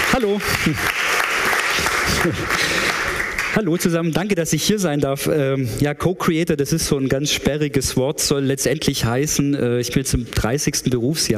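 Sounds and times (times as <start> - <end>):
audience applause welcoming a speaker onto a stage: 0.0 - 4.0
speech: 0.2 - 11.3.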